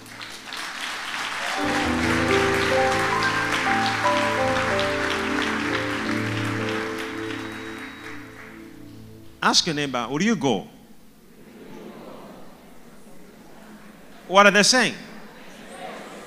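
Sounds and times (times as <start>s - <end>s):
audience clapping: 0.0s - 9.2s
sustained musical tones: 1.6s - 10.2s
speech: 9.4s - 10.8s, 14.3s - 15.1s.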